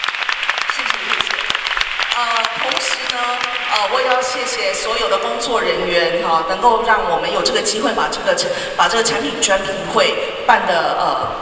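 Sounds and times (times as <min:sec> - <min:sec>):
audience applause: 0:00.0 - 0:04.6
speech: 0:02.2 - 0:11.4.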